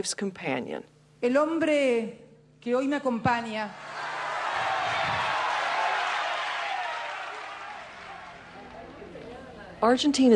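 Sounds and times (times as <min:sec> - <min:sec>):
speech: 0:00.0 - 0:03.9, 0:09.8 - 0:10.3
large crowd applause: 0:03.7 - 0:09.4.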